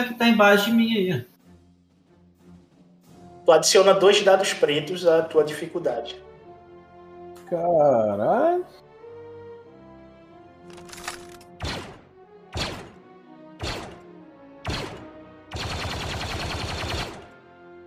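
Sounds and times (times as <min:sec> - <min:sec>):
speech: 0:00.0 - 0:01.3, 0:03.4 - 0:06.2, 0:07.5 - 0:08.8
gunshot sound effects in a tabletop role-playing game session: 0:11.2 - 0:13.0, 0:13.6 - 0:17.4.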